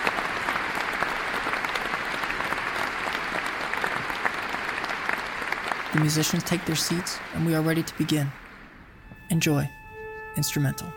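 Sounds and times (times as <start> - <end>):
concert audience applauding: 0.0 - 9.0
speech: 6.0 - 8.4, 9.3 - 9.8, 10.4 - 10.9.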